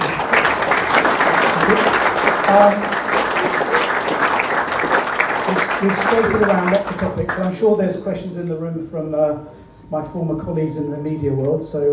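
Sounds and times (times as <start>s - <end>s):
audience applause: 0.0s - 7.6s
speech: 2.5s - 2.9s, 5.8s - 11.9s.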